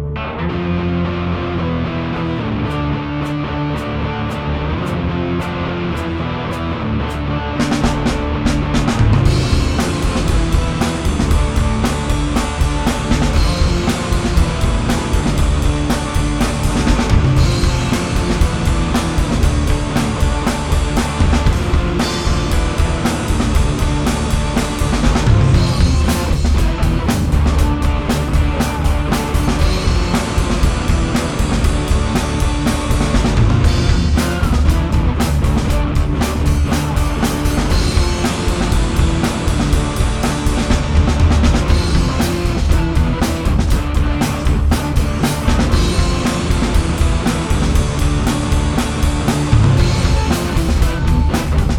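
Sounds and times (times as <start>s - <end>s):
drums: 0.1s - 51.7s.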